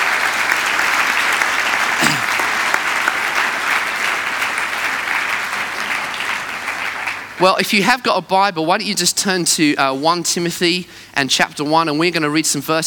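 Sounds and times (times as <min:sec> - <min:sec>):
audience applause: 0:00.0 - 0:07.6
speech: 0:07.4 - 0:12.8.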